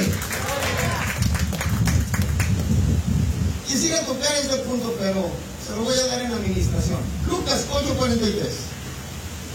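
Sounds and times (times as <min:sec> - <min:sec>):
audience clapping hands: 0:00.0 - 0:02.9
speech: 0:04.0 - 0:08.7.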